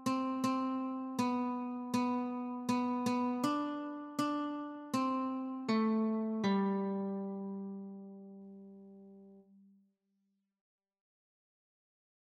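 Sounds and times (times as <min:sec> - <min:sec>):
guitar playing Christmas tune: 0:00.0 - 0:09.4.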